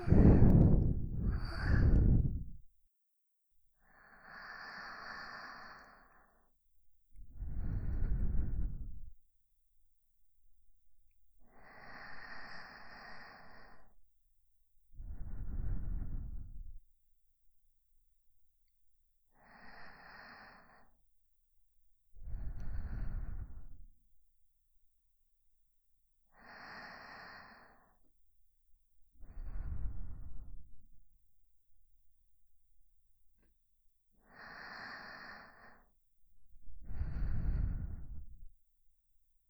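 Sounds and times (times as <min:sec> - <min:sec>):
sleeping breath loop on left channel: 0:00.0 - 0:02.6, 0:03.8 - 0:06.4, 0:07.3 - 0:09.1, 0:11.5 - 0:14.0, 0:15.0 - 0:16.7, 0:19.4 - 0:20.9, 0:22.2 - 0:23.8, 0:26.4 - 0:28.0, 0:29.2 - 0:30.7, 0:34.2 - 0:35.9, 0:36.8 - 0:38.5.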